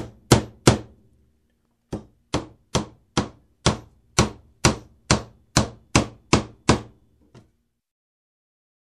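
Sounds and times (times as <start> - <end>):
hammer hammering nails: 0.0 - 1.0, 1.9 - 7.0.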